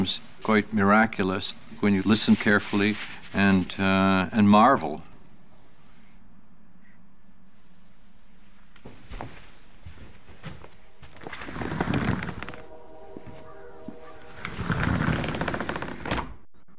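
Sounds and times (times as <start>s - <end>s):
speech: 0.0s - 5.1s
train going off into the distance: 11.4s - 16.1s.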